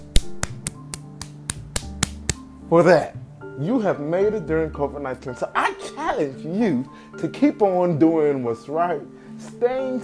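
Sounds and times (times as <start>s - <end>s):
hand claps: 0.0s - 2.5s
speech: 2.7s - 10.0s.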